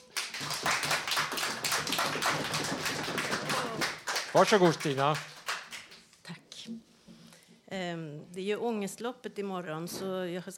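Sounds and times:
audience applauding: 0.0s - 6.0s
speech: 4.4s - 5.3s, 7.8s - 10.5s.

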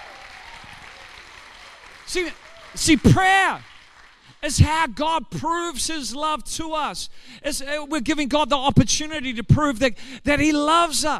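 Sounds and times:
audience clapping: 0.0s - 4.7s
speech: 2.1s - 3.7s, 4.4s - 11.1s.

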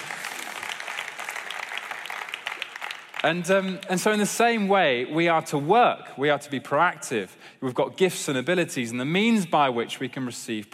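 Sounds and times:
audience applause: 0.0s - 3.5s
speech: 3.2s - 10.7s.

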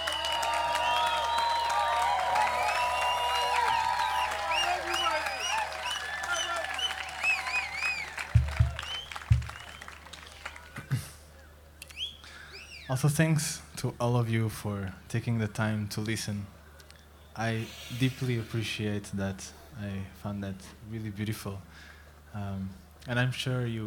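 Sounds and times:
audience applause: 0.0s - 11.0s
speech: 13.0s - 16.6s, 17.4s - 23.8s
high whistle-like or chirping tones: 17.4s - 18.8s.

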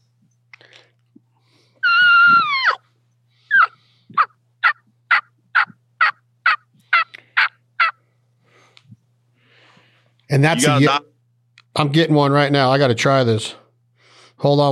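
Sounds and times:
turkey call yelping and cutting: 1.8s - 2.8s, 3.5s - 8.0s
speech: 10.3s - 11.1s, 11.8s - 13.6s, 14.4s - 14.6s.

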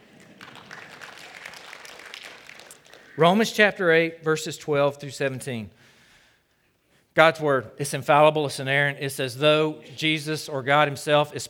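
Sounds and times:
audience clapping: 0.0s - 3.4s
speech: 3.2s - 5.9s, 7.2s - 11.4s.

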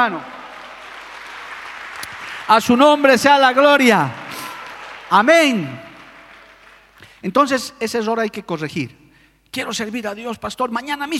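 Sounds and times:
speech: 0.0s - 0.4s, 2.5s - 4.2s, 5.1s - 5.8s, 7.2s - 11.1s
audience applause: 0.0s - 7.0s.

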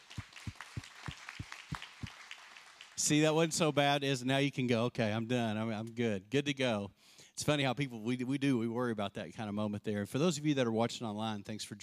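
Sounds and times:
audience applause: 0.0s - 3.3s
speech: 3.0s - 11.8s.

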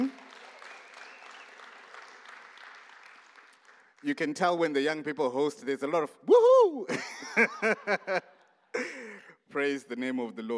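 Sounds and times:
audience applause: 0.0s - 4.2s
speech: 4.0s - 10.5s
laughter: 6.9s - 9.2s.

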